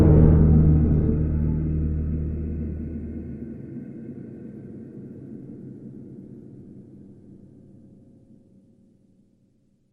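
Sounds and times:
ambient music: 0:00.0 - 0:04.7.

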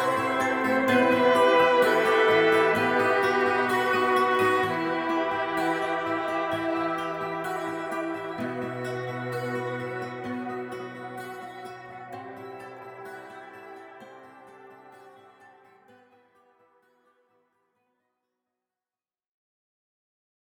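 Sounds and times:
acoustic music: 0:00.0 - 0:16.2.

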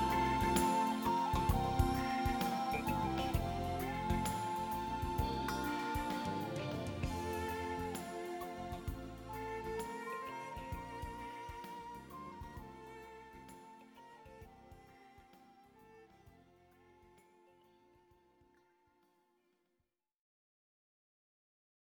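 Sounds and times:
ocarina: 0:00.0 - 0:14.6.

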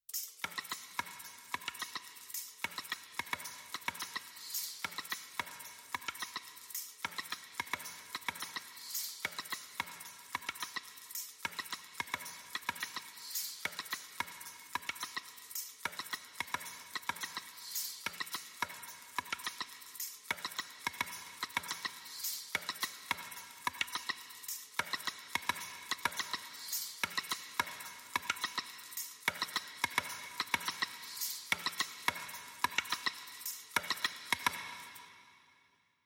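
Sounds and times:
high percussion: 0:00.0 - 0:35.4.

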